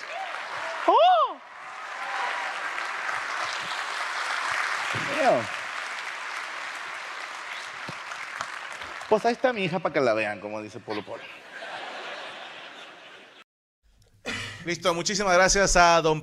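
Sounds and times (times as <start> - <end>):
audience applause: 0.0 - 9.8
speech: 5.2 - 5.6, 9.1 - 11.4, 14.6 - 16.2
laughter: 10.9 - 13.4.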